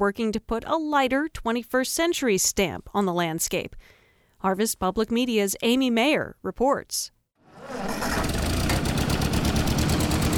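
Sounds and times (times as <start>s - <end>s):
speech: 0.0s - 8.1s
1947 Ford 2N tractor engine running: 7.5s - 10.3s.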